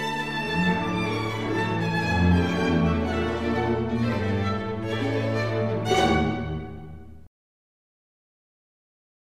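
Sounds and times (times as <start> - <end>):
string orchestra music: 0.0 - 7.3.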